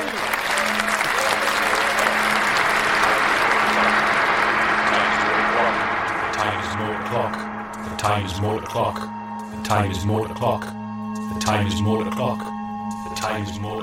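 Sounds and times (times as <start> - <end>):
crowd applause: 0.0 - 8.6
speech: 8.0 - 10.8, 11.4 - 12.5, 13.2 - 13.8.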